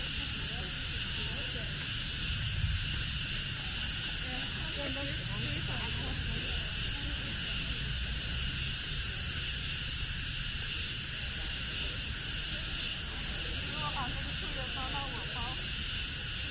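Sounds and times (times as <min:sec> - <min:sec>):
faint voices: 0:00.0 - 0:10.1, 0:10.7 - 0:16.4
cicadas droning after rain at the Ming Xiaoling in Nanjing: 0:00.0 - 0:16.4
low rumble: 0:02.0 - 0:09.0.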